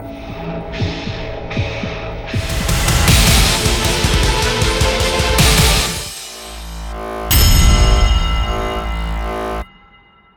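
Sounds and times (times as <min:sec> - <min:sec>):
jingle: 0:02.4 - 0:10.3.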